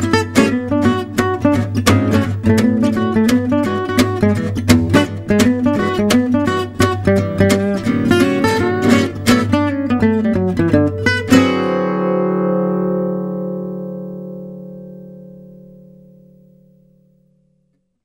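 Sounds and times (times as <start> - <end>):
gypsy jazz music: 0.0 - 16.6.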